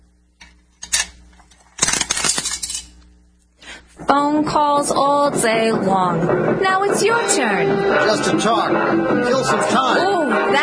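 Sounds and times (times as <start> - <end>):
dime clinking and rattling into a radio: 1.8 - 3.0
speech: 4.1 - 10.6.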